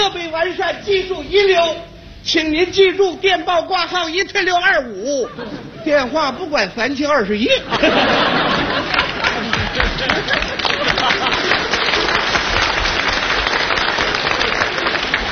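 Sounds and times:
speech: 0:00.0 - 0:09.0
laughter: 0:05.0 - 0:06.1, 0:07.5 - 0:15.2
applause: 0:08.6 - 0:15.2.

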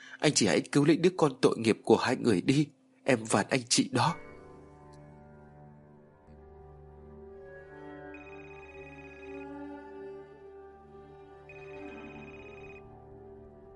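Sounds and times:
speech: 0:00.2 - 0:04.3
mobile phone ringing: 0:08.2 - 0:10.1, 0:11.5 - 0:12.8.

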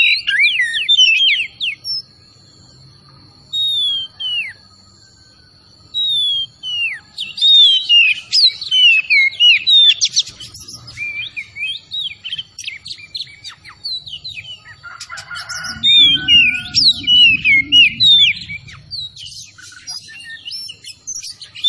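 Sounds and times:
Oriental magpie-robin song: 0:00.0 - 0:02.2, 0:05.7 - 0:21.6
faint low rumble: 0:15.4 - 0:20.2.

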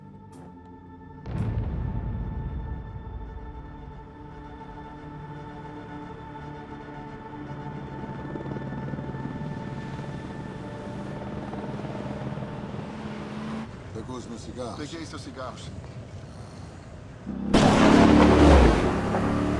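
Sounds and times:
helicopter: 0:04.4 - 0:19.5
speech: 0:14.1 - 0:15.9.

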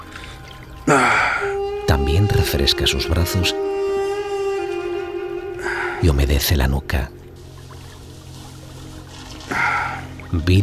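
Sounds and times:
river water splashing while washing face: 0:00.0 - 0:10.6
speech: 0:02.0 - 0:03.8, 0:06.0 - 0:07.2, 0:10.3 - 0:10.6.

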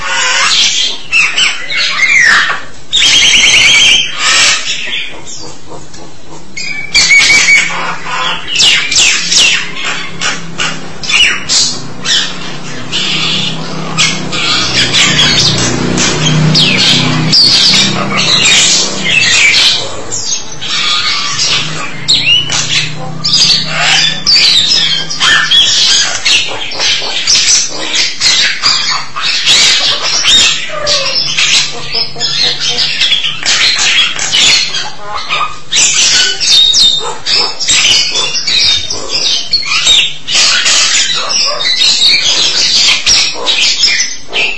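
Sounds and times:
starling squawking: 0:00.0 - 0:44.5.

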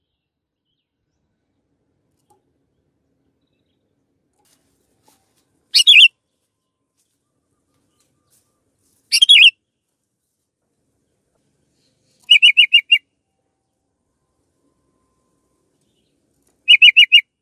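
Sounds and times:
canary chirping: 0:05.7 - 0:06.1, 0:09.1 - 0:09.5, 0:12.2 - 0:13.0, 0:16.7 - 0:17.2.

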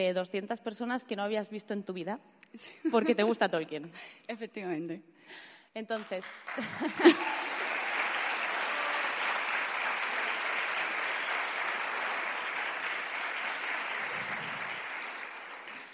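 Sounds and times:
speech: 0:00.0 - 0:07.5
audience applauding at live event: 0:06.0 - 0:15.9
laughter: 0:06.5 - 0:09.2.

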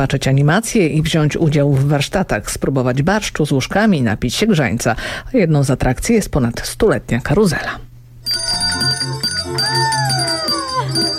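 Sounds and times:
speech: 0:00.0 - 0:09.1
small bells jingling: 0:08.3 - 0:11.1.

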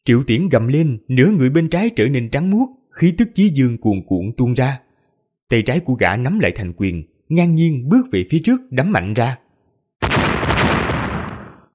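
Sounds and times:
speech: 0:00.0 - 0:04.9, 0:05.5 - 0:09.4
thunderous explosion: 0:10.0 - 0:11.7.

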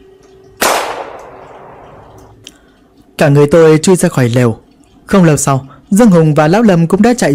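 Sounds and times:
gunshot: 0:00.6 - 0:01.8
speech: 0:03.2 - 0:07.3.

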